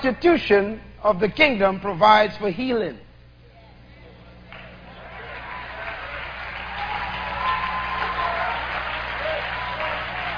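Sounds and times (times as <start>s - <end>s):
speech: 0.0s - 3.0s
audience hand clapping: 4.5s - 10.3s.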